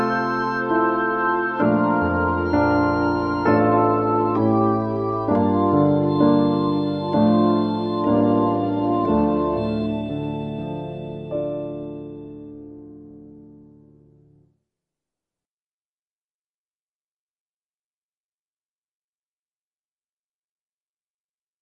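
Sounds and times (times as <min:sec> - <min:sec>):
violin accompaniment: 0:00.0 - 0:12.1.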